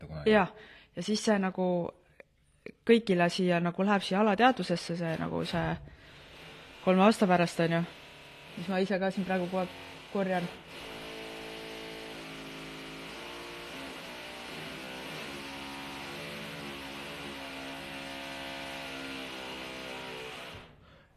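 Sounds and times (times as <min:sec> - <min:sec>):
speech: 0:00.2 - 0:02.0, 0:02.6 - 0:06.0, 0:06.8 - 0:08.0, 0:08.6 - 0:10.9
power tool droning in renovation work: 0:05.1 - 0:20.8.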